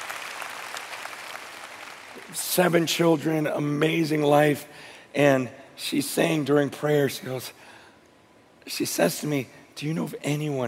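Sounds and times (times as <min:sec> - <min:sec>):
audience applause during a prayer gathering: 0:00.0 - 0:02.3
speech: 0:02.2 - 0:07.7, 0:08.7 - 0:10.6.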